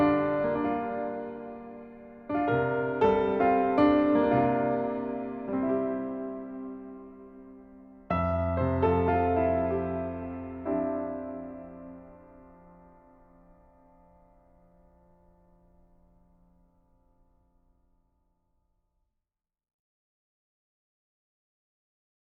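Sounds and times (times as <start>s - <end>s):
solo piano: 0.0s - 17.2s.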